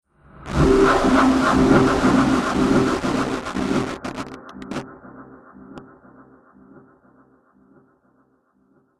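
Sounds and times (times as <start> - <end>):
cinematic static destruction hit: 0.5 - 4.9.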